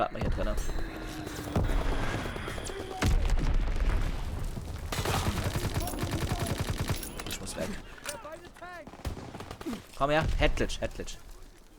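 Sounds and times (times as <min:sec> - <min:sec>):
speech: 0:00.0 - 0:01.3, 0:09.7 - 0:11.3
SMG gunfire bursts in a video game: 0:00.6 - 0:07.5, 0:08.8 - 0:09.9.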